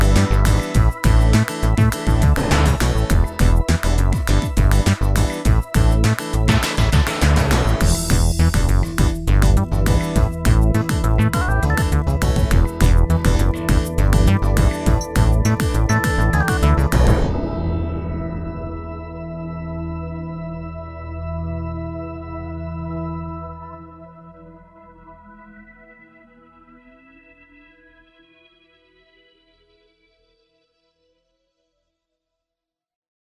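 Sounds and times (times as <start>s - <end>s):
groove music: 0.0s - 20.7s.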